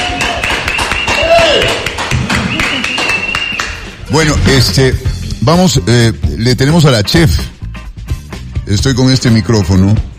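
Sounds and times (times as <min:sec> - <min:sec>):
audience clapping: 0:00.0 - 0:04.1
speech: 0:04.1 - 0:07.5, 0:08.7 - 0:10.1.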